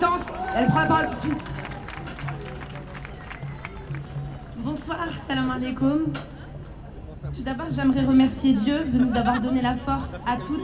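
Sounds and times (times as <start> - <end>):
crowd applauding: 0.0 - 5.6
speech: 0.2 - 1.6, 4.6 - 6.4, 7.2 - 10.6
laughter: 8.4 - 10.6.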